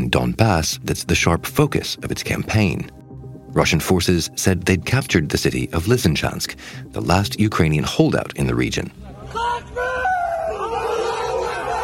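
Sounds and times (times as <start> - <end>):
speech: 0.2 - 3.0, 3.6 - 9.0
Chechen fighters shouting in celebration: 9.2 - 11.8.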